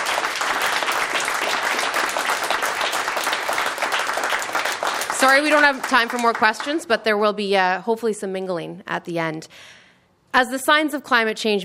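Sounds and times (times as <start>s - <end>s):
sustained applause from a large audience: 0.0s - 6.8s
speech: 5.2s - 11.6s.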